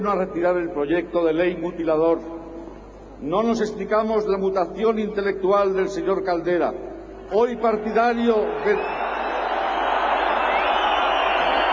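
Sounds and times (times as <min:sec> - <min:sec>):
speech: 0:00.0 - 0:02.4, 0:03.2 - 0:09.0
audience booing: 0:08.6 - 0:11.7.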